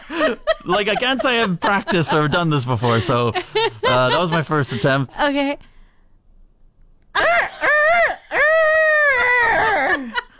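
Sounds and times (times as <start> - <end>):
laughter: 0.0 - 5.0, 7.2 - 10.3
speech: 0.2 - 5.7
human voice imitating a rooster crowing: 8.5 - 9.1.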